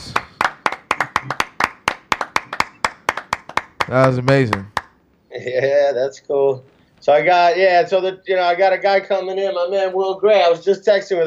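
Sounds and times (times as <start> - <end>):
live hand clapping: 0.0 - 5.0
speech: 3.9 - 4.8, 5.4 - 11.2.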